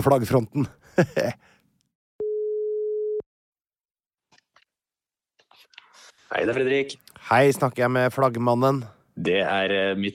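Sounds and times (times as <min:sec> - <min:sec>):
speech: 0:00.0 - 0:01.5, 0:06.3 - 0:10.1
telephone ringback tone of an outgoing call: 0:02.2 - 0:03.2.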